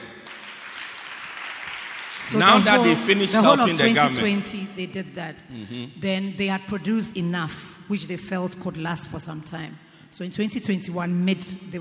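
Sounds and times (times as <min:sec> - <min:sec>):
crowd applause: 0:00.0 - 0:03.9
speech: 0:02.3 - 0:11.7.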